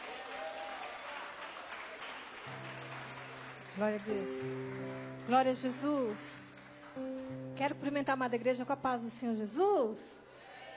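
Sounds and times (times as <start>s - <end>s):
audience applauding: 0.0s - 7.9s
speech: 3.8s - 10.2s.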